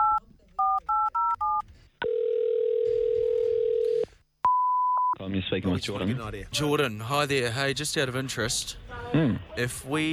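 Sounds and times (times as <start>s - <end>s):
telephone dialing tones: 0.0s - 4.8s
speech: 5.5s - 10.1s.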